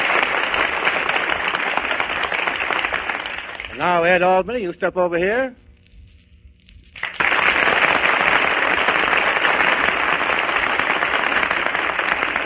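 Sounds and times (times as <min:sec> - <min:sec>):
studio audience applause: 0:00.0 - 0:04.1, 0:07.0 - 0:12.4
speech: 0:03.8 - 0:05.6.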